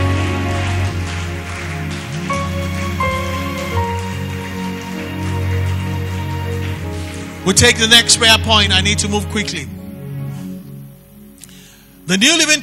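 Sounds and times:
audience clapping hands: 0.0s - 9.5s
speech: 7.5s - 9.8s, 12.1s - 12.6s.

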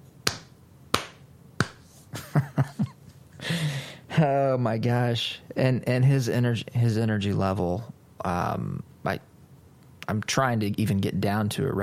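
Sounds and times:
sharp claps imitating weak applause: 0.2s - 1.8s
speech: 4.2s - 9.3s, 10.1s - 11.8s.

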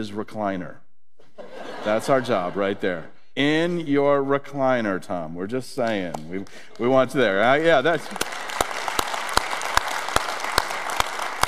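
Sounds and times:
speech: 0.0s - 0.8s, 1.8s - 8.3s
laughter: 1.4s - 3.1s
audience clapping: 5.9s - 11.4s.

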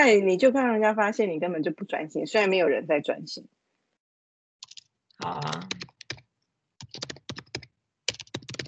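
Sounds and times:
speech: 0.0s - 3.6s, 5.2s - 5.9s
typing on a computer keyboard: 4.6s - 8.6s.

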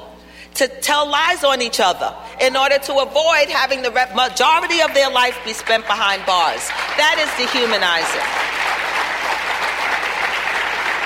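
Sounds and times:
speech: 0.6s - 8.5s
audience clapping: 4.8s - 11.0s.

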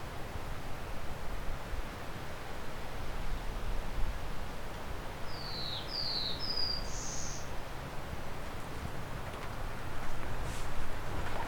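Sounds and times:
background noise: 0.0s - 11.4s
black-throated blue warbler buzzy song: 5.3s - 7.6s.

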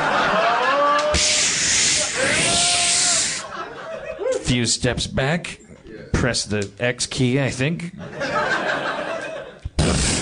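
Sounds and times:
laughter: 0.0s - 1.4s, 3.0s - 4.5s, 7.9s - 9.9s
video game gel spray hiss: 1.1s - 3.5s
speech: 4.5s - 8.3s.

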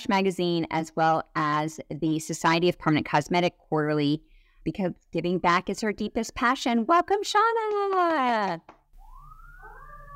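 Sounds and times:
speech: 0.0s - 8.8s
sirens passing outside: 9.0s - 10.1s.

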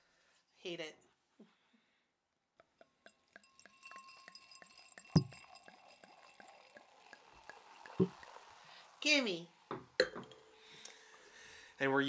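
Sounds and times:
speech: 0.6s - 1.6s, 9.0s - 9.5s, 11.8s - 12.0s
liquid trickling into a huge new glass: 2.8s - 11.4s
bottle popping open: 5.1s - 6.5s, 7.1s - 8.3s.

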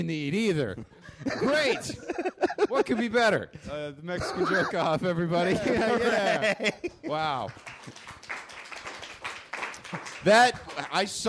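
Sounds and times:
speech: 0.0s - 8.2s, 9.9s - 11.2s
laughter: 0.7s - 3.4s, 4.2s - 7.4s
sparse weak applause: 7.1s - 11.2s.

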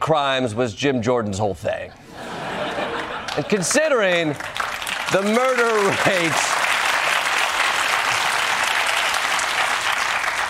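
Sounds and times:
speech: 0.1s - 2.3s, 3.4s - 6.5s
laughter: 1.9s - 4.5s
crowd clapping: 3.0s - 10.4s.

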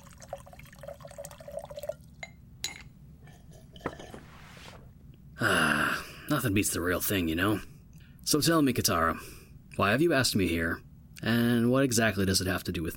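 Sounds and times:
liquid poured into a glass: 0.0s - 2.4s
light drips and clinks: 0.0s - 2.9s
speech: 6.3s - 7.7s, 8.3s - 12.9s.

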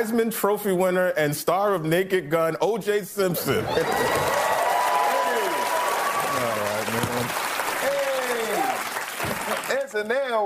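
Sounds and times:
speech: 0.0s - 4.4s, 9.9s - 10.4s
audience applause: 3.6s - 9.9s.

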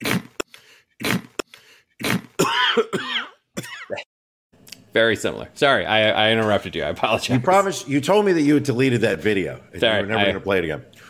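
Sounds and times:
coughing from sour beer caught in throat: 2.0s - 4.1s
speech: 5.0s - 10.9s.

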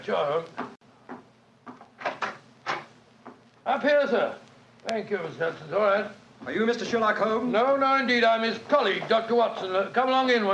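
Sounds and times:
speech: 0.0s - 0.8s, 3.7s - 10.5s
door opening: 1.8s - 3.0s.

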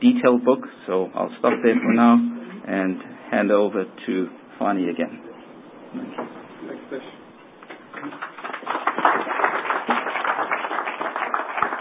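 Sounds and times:
speech: 0.2s - 5.3s, 5.9s - 7.2s, 8.0s - 8.3s
audience applause: 7.9s - 11.7s.

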